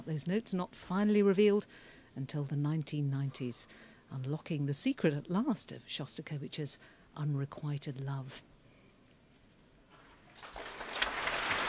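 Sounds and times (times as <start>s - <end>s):
speech: 0.1s - 8.5s
concert hall audience applause: 10.3s - 11.6s.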